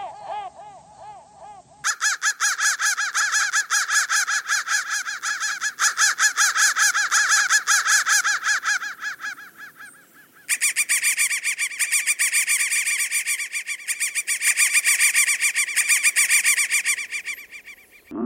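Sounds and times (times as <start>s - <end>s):
crow cawing: 0.0s - 18.1s.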